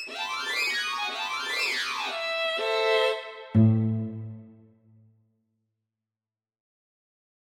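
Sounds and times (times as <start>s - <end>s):
string swing music: 0.1s - 4.6s.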